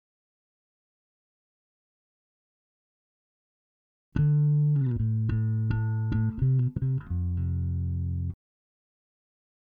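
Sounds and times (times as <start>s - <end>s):
bass: 4.2s - 8.4s.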